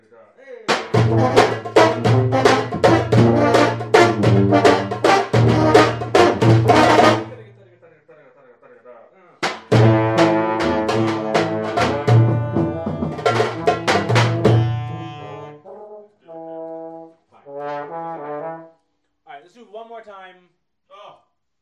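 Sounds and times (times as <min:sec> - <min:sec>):
shuffle rhythm rehearsal: 0:00.7 - 0:07.6, 0:09.4 - 0:15.4.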